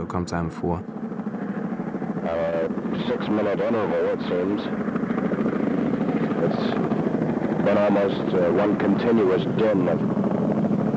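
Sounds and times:
people talking: 0:00.0 - 0:00.8, 0:02.2 - 0:04.8, 0:06.2 - 0:06.8, 0:07.6 - 0:10.0
military supply helicopter engine and rotor: 0:00.0 - 0:10.9.

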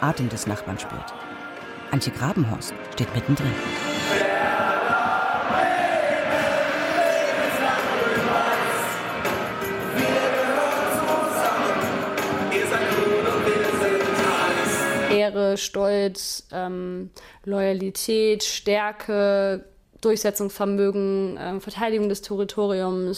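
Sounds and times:
speech: 0:00.0 - 0:03.9, 0:15.5 - 0:23.1
football ultras chanting in stadium: 0:04.0 - 0:15.1.

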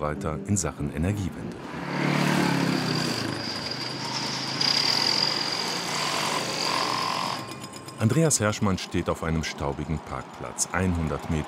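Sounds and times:
speech: 0:00.0 - 0:01.8, 0:08.0 - 0:11.4
trucks passing: 0:00.0 - 0:11.4
bulldozers: 0:01.5 - 0:11.4
jackhammers: 0:01.7 - 0:11.4
high-pitched mechanical whine: 0:02.6 - 0:10.4.

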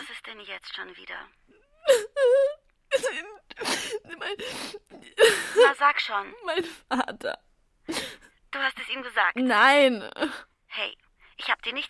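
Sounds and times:
speech: 0:00.2 - 0:11.8
person crying and sobbing in a German radio drama: 0:01.7 - 0:05.8, 0:06.4 - 0:08.3.

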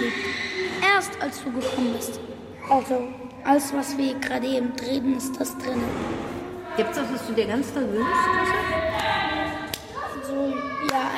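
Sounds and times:
voices murmuring and humming: 0:00.0 - 0:11.1
speech: 0:01.0 - 0:08.9
child clapping hands experimentally: 0:10.8 - 0:11.1.

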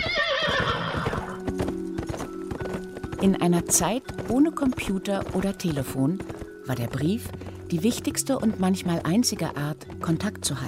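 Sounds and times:
horse whinnying: 0:00.0 - 0:01.5
hooves clip-clopping: 0:00.0 - 0:10.6
speech: 0:03.2 - 0:10.6.

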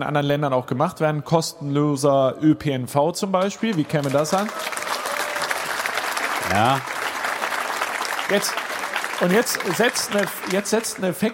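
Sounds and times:
speech: 0:00.0 - 0:05.0, 0:06.5 - 0:07.0, 0:08.3 - 0:11.3
audience applause: 0:03.4 - 0:11.3.

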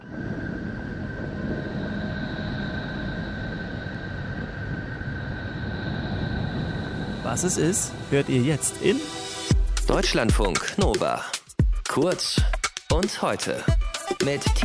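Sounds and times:
sonification of planet Neptune, rumbling drone: 0:00.0 - 0:10.5
speech: 0:07.3 - 0:09.2, 0:09.9 - 0:11.3, 0:11.9 - 0:14.6.

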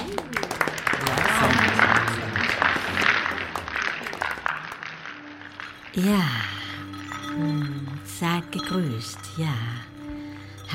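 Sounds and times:
applause: 0:00.0 - 0:07.2
speech: 0:06.0 - 0:06.5, 0:08.8 - 0:09.8.

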